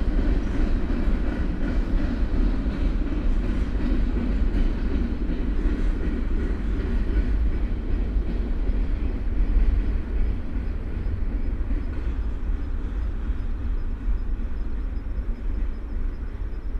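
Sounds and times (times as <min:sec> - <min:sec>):
freight train: 0:00.0 - 0:16.7.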